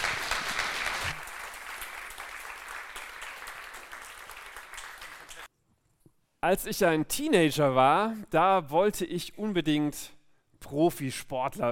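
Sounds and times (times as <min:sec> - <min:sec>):
applause: 0:00.0 - 0:05.5
speech: 0:06.4 - 0:11.7.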